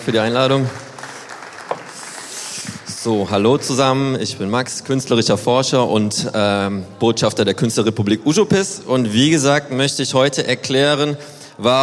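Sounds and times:
speech: 0.0 - 0.8, 3.0 - 11.8
audience clapping: 0.0 - 5.3.

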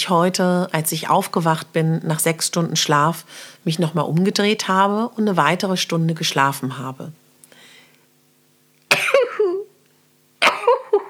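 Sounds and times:
speech: 0.0 - 7.2
person sneezing: 8.9 - 9.7.

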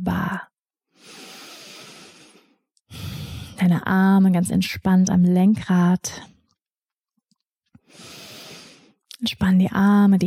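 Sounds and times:
slow soft breath during a seated relaxation exercise: 0.9 - 3.6, 7.8 - 9.0
speech: 3.6 - 6.3, 9.2 - 10.2.

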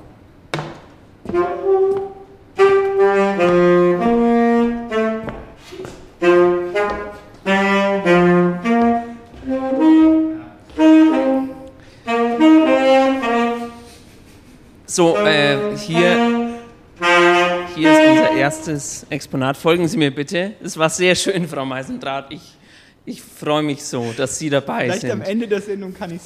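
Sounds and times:
saxophone playing a short melodic interlude: 1.2 - 14.1, 14.9 - 19.0
speech: 18.6 - 26.2.

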